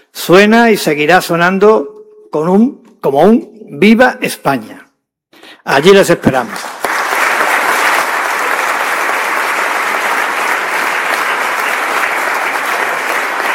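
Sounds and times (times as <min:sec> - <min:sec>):
speech: 0:00.2 - 0:04.8, 0:05.6 - 0:06.7
large crowd applause: 0:06.6 - 0:13.5.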